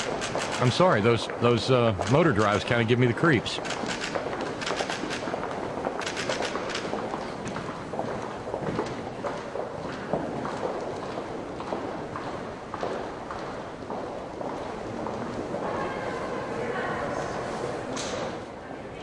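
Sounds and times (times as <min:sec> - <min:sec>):
crowd walking in big tall broad echoey halls: 0:00.0 - 0:19.0
speech: 0:00.6 - 0:03.9.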